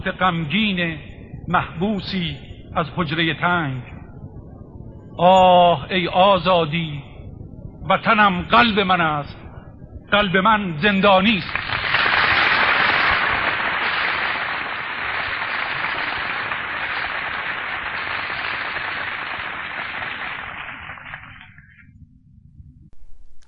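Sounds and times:
speech: 0:00.0 - 0:03.9, 0:05.2 - 0:07.1, 0:07.8 - 0:09.4, 0:10.1 - 0:11.6
crowd applauding after poem recitation: 0:11.4 - 0:21.7.

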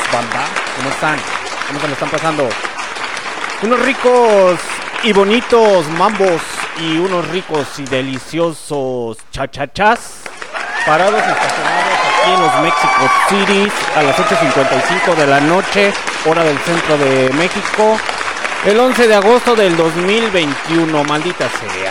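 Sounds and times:
audience applause: 0:00.0 - 0:08.3, 0:10.2 - 0:21.9
speech: 0:00.1 - 0:02.7, 0:03.6 - 0:10.2, 0:10.8 - 0:21.9.

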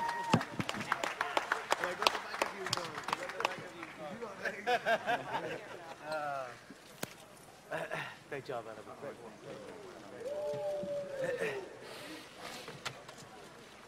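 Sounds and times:
round of applause: 0:00.0 - 0:04.3
laughter: 0:04.4 - 0:05.9, 0:11.0 - 0:11.9
speech: 0:04.8 - 0:06.6, 0:07.7 - 0:12.0.

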